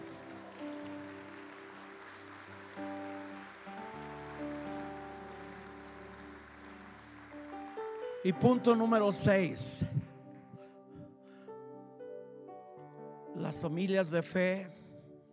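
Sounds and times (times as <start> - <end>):
audience applauding loudly: 0.0 - 10.7
speech: 8.2 - 10.0, 13.6 - 14.8.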